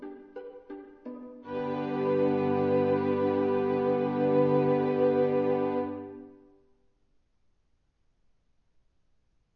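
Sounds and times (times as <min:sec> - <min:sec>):
string quartet: 0:00.0 - 0:06.2.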